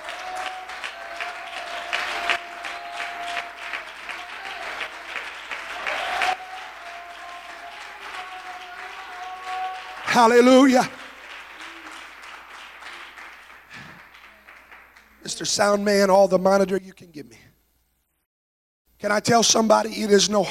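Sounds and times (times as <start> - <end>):
church congregation clapping during a sermon: 0.0 - 16.0
speech: 10.2 - 11.0, 15.4 - 17.2, 19.0 - 20.4.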